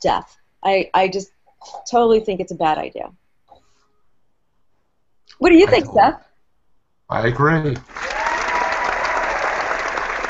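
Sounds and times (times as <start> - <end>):
speech: 0.0 - 3.2, 5.3 - 6.3, 7.1 - 8.0
round of applause: 7.6 - 10.2.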